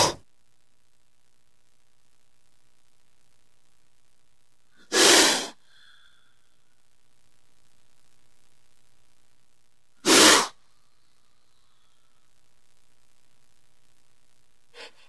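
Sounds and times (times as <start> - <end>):
snake calling: 10.0 - 10.6.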